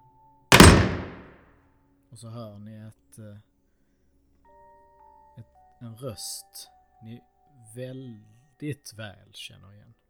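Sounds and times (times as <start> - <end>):
door slamming shut: 0.5 - 1.3
speech: 2.2 - 3.5, 5.4 - 10.0.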